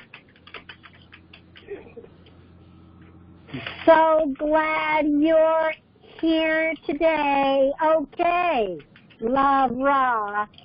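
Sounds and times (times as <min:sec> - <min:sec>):
typing a message on a computer keyboard: 0:00.0 - 0:01.7, 0:08.7 - 0:09.4
speech: 0:03.5 - 0:10.6.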